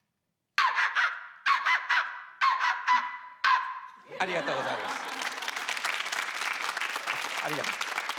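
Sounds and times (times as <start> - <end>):
person imitating chihuahua barking in clapping rhythm: 0.6 - 3.9
laughter: 4.0 - 8.1
speech: 4.2 - 5.1, 7.4 - 7.8.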